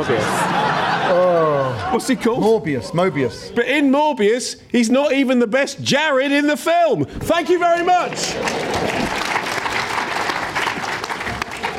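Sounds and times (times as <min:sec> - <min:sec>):
speech: 0:00.0 - 0:00.4, 0:01.1 - 0:09.0
laughter: 0:00.0 - 0:03.9, 0:08.0 - 0:11.7
desultory clapping: 0:08.0 - 0:11.7.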